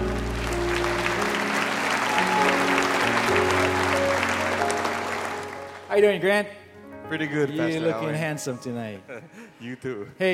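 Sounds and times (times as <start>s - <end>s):
audience applauding to welcome guests at a church gathering: 0.0s - 5.9s
speech: 6.0s - 10.3s.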